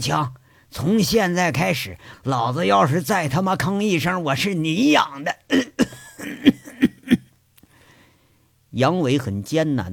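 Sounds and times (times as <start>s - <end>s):
speech: 0.0s - 6.8s, 8.7s - 9.9s
coughing: 4.9s - 7.4s.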